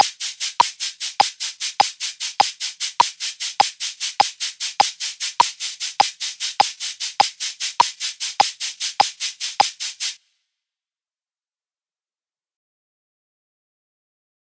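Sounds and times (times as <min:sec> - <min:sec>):
cabasa shaking: 0:00.0 - 0:10.2.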